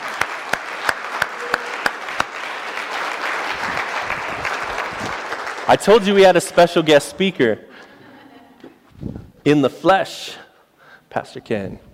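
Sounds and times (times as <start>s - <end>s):
audience applause: 0.0s - 6.3s
speech: 5.7s - 7.7s, 9.5s - 10.4s, 11.1s - 11.9s
laughter: 7.7s - 8.8s.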